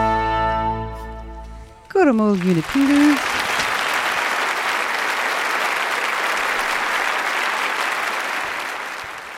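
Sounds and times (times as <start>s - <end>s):
speech: 2.0s - 3.3s
audience applause after orchestral performance: 2.0s - 9.3s.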